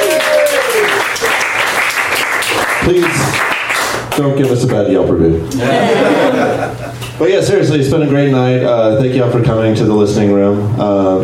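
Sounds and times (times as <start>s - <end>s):
audience applause at a comedy show: 0.0s - 4.1s
speech: 2.9s - 3.5s, 4.2s - 11.2s
laughter: 5.5s - 7.1s.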